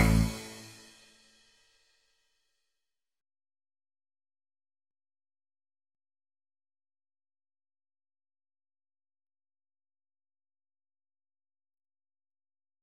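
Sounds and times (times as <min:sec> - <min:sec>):
backing track: 0:00.0 - 0:01.0.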